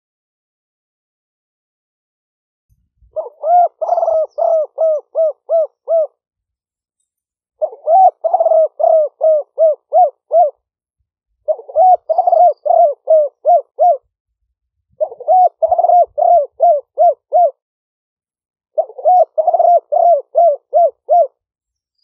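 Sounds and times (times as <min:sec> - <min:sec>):
spotted dove cooing: 0:03.1 - 0:06.2, 0:07.6 - 0:10.6, 0:11.4 - 0:14.1, 0:14.9 - 0:17.6, 0:18.8 - 0:21.4.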